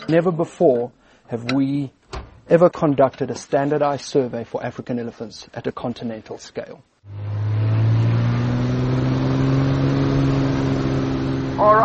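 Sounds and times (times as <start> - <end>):
speech: 0.1 - 7.3, 11.6 - 11.8
small aircraft engine revving before takeoff: 7.1 - 11.8.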